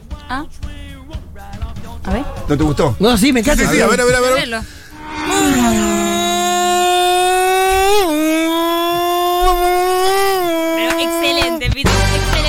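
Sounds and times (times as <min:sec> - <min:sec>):
speech: 0:00.3 - 0:06.0, 0:11.0 - 0:12.3
voice imitating a Formula 1 racing car engine: 0:05.4 - 0:12.0.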